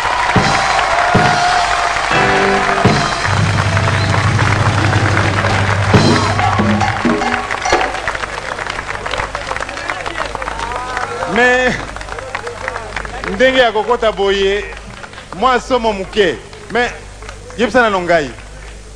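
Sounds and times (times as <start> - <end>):
audience applauding loudly: 0.0 - 18.9
speech: 13.4 - 17.0, 17.6 - 18.4.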